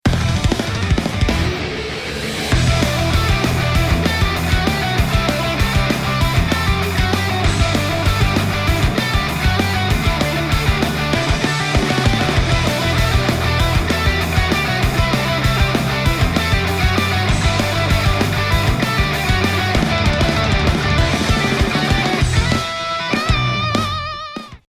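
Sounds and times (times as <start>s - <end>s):
bass: 0.0s - 24.6s.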